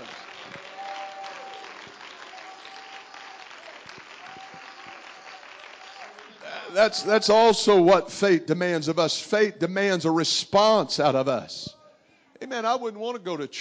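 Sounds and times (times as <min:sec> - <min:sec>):
audience clapping hands: 0:00.0 - 0:07.8
speech: 0:06.7 - 0:11.8, 0:12.5 - 0:13.5.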